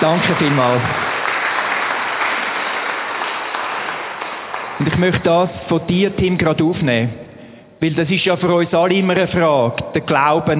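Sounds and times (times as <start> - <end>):
speech: 0.0 - 1.0, 4.8 - 7.2, 7.8 - 10.5
applause: 0.0 - 5.6.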